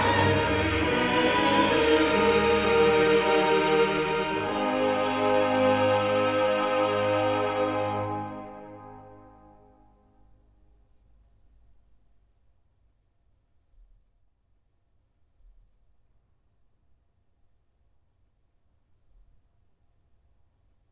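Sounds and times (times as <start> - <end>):
choir singing: 0.0 - 9.8.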